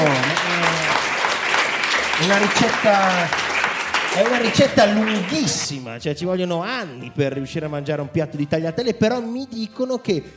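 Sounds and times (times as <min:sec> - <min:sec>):
crowd clapping: 0:00.0 - 0:05.8
speech: 0:02.2 - 0:03.4, 0:04.2 - 0:10.3.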